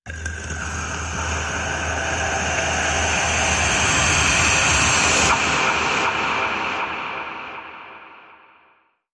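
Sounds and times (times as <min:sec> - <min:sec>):
creature intense suction: 0:00.1 - 0:06.9.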